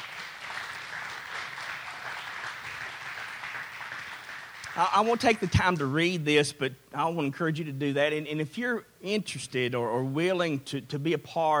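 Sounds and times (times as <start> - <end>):
large crowd applause: 0.0 - 5.7
speech: 4.8 - 11.5.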